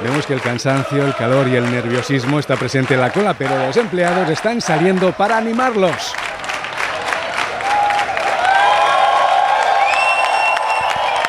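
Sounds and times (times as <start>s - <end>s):
crowd clapping: 0.0s - 11.2s
scattered cheers: 0.0s - 11.2s
speech: 0.2s - 6.3s
high whistles: 9.6s - 11.2s.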